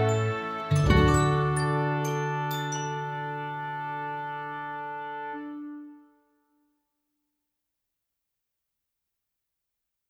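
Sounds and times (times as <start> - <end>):
chimes twinkling: 0.1 - 3.8.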